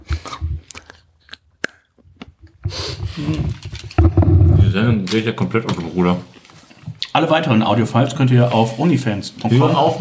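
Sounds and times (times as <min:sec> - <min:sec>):
dark chocolate being bitten: 0:00.1 - 0:02.6
breathy noise: 0:02.6 - 0:04.9
speech: 0:04.7 - 0:06.4, 0:07.2 - 0:10.0.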